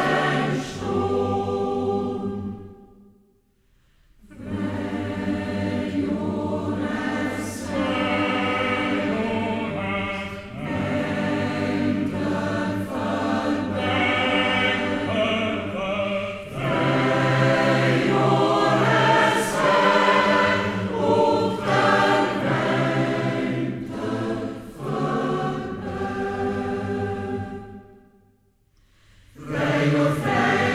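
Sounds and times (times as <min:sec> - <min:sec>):
male choral society singing: 0:00.0 - 0:03.0, 0:04.2 - 0:28.0, 0:29.3 - 0:30.7.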